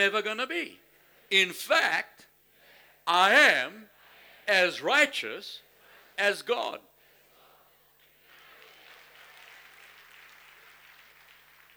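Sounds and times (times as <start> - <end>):
speech: 0.0 - 2.3, 3.1 - 3.9, 4.5 - 5.6, 6.2 - 6.9
nervous audience clapping: 8.0 - 11.7.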